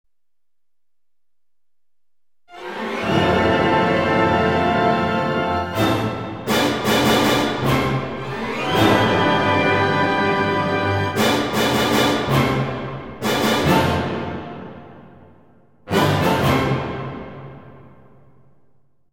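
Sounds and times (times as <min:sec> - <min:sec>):
full orchestra finale: 0:02.5 - 0:15.2, 0:15.9 - 0:18.0.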